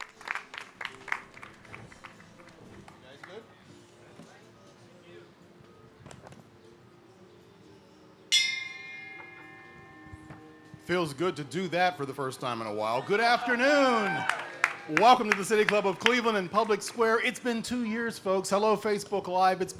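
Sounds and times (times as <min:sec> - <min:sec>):
audience applause: 0:00.0 - 0:02.9, 0:13.4 - 0:16.5
speech: 0:10.9 - 0:19.7.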